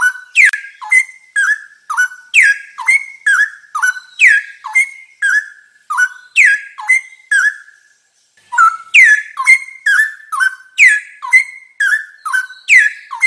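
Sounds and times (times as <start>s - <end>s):
straw-headed bulbul singing: 0.0s - 13.2s.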